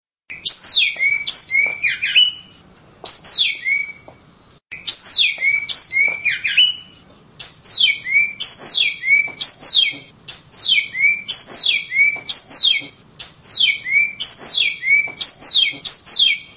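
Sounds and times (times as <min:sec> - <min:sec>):
Oriental magpie-robin song of chattered notes and whistles: 0:00.3 - 0:04.1, 0:04.7 - 0:16.5.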